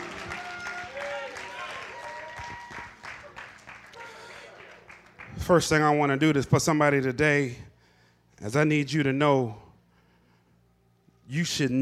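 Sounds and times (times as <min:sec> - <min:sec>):
hand clapping: 0:00.0 - 0:05.4
speech: 0:05.5 - 0:07.7, 0:08.4 - 0:09.6, 0:11.3 - 0:11.8.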